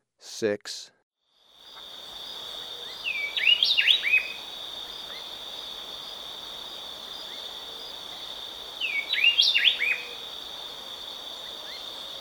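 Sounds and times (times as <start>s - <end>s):
Speckle-breasted Wren in South America: 1.3s - 12.1s.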